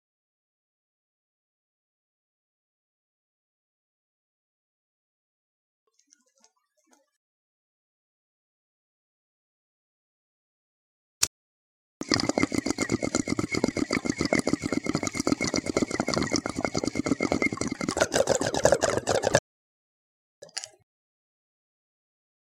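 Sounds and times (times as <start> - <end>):
bong in use: 12.0 - 19.4.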